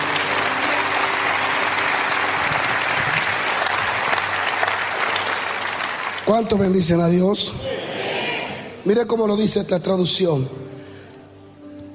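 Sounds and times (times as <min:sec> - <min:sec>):
audience applause: 0:00.0 - 0:06.7
speech: 0:06.3 - 0:07.8, 0:08.8 - 0:10.7.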